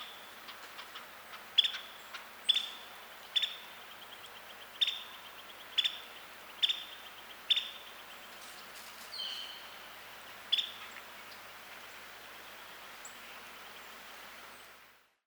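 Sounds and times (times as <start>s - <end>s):
Carolina wren Thryothorus ludovicianus calling: 0.0s - 8.4s, 9.1s - 11.4s.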